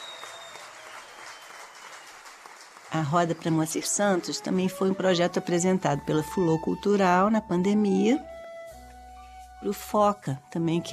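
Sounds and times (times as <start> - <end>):
audience applause welcoming a percussionist and singer: 0.0 - 4.7
speech: 2.9 - 8.3, 9.6 - 10.9.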